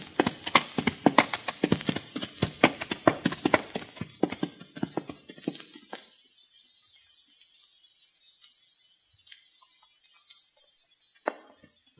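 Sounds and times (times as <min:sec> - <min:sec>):
horses' hooves clopping over hard ground on mountain trail: 0:00.0 - 0:06.1.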